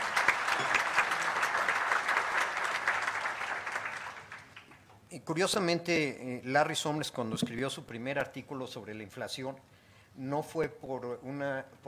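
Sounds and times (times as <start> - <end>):
audience applause: 0.0 - 4.8
speech: 5.3 - 11.8.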